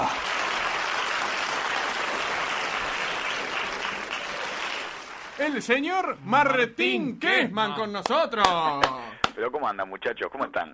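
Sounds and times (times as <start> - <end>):
studio audience applause: 0.0 - 6.1, 8.0 - 9.4
speech: 5.4 - 10.7.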